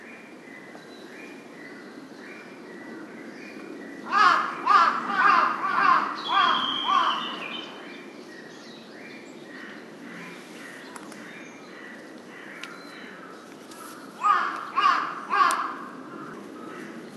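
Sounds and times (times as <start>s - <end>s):
Large-billed crow giving harsh caws: 4.1s - 7.3s, 14.2s - 17.0s.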